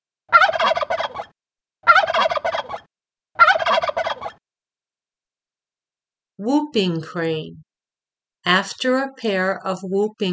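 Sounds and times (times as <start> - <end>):
turkey gobbling: 0.3 - 4.4
speech: 6.4 - 7.6, 8.4 - 10.3.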